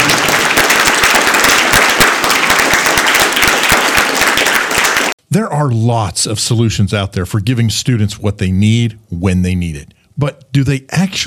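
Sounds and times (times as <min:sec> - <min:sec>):
round of applause: 0:00.0 - 0:05.2
speech: 0:05.4 - 0:11.2.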